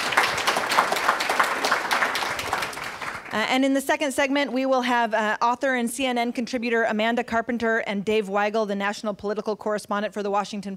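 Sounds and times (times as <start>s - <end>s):
audience applauding: 0.0s - 3.4s
speech: 3.3s - 10.7s.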